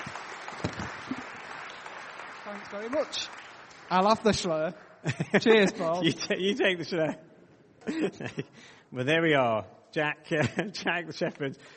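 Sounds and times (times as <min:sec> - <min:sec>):
applause: 0:00.0 - 0:05.1
speech: 0:02.5 - 0:11.7.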